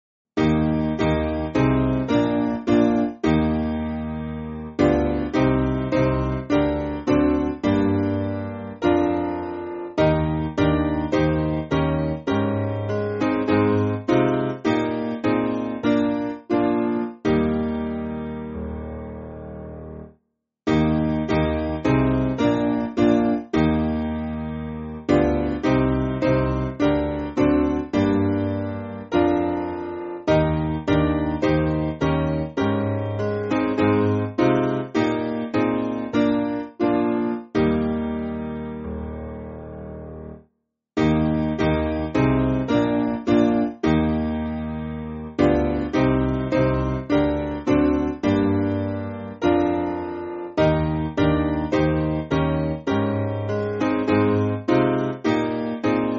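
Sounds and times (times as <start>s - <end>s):
piano: 0.4s - 56.1s.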